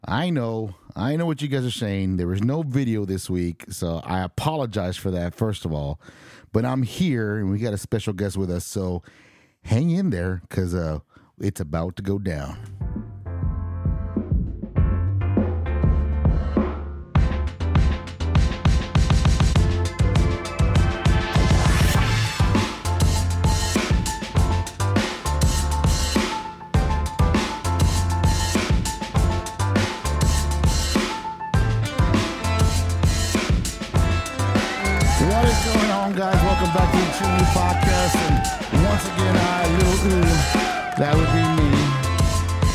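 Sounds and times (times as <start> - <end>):
speech: 0.1 - 12.8
loud music with pounding bass beat and layered instruments: 12.8 - 42.7.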